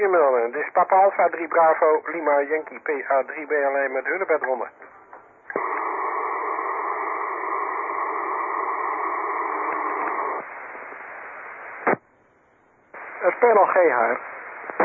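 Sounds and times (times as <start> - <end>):
faint radio transmission: 0.0 - 4.9, 5.5 - 12.0, 13.0 - 14.8
speech: 0.0 - 5.7, 13.2 - 14.4
static hiss: 5.4 - 12.2, 12.9 - 14.8
radio squelch burst: 5.5 - 12.0, 13.0 - 14.8.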